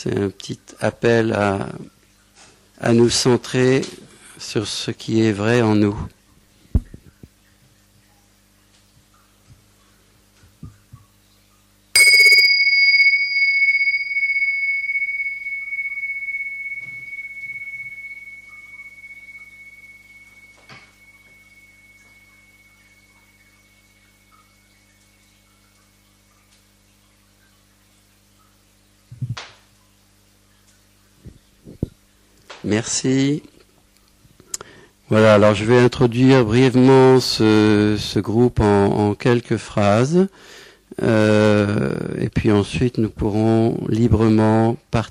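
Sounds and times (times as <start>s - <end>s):
speech: 0.0s - 2.0s, 2.8s - 6.2s, 32.7s - 33.5s, 35.1s - 45.0s
small bell ringing: 12.0s - 24.1s.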